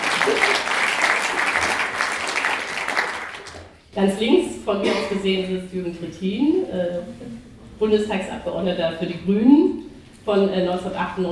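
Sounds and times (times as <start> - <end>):
audience applause: 0.0 - 3.8
speech: 4.0 - 11.3.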